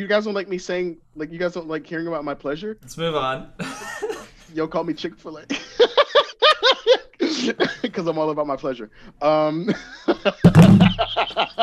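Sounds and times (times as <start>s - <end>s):
speech: 0.0s - 6.0s, 6.6s - 11.6s
laughter: 5.4s - 8.2s, 9.4s - 11.6s
phone dropped on the floor: 10.4s - 11.1s.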